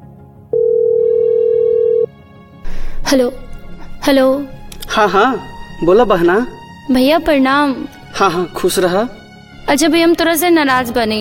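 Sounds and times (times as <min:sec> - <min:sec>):
unanswered telephone call ringing as a steady electronic tone: 0:00.5 - 0:02.1
speech: 0:03.1 - 0:03.4, 0:04.0 - 0:11.1.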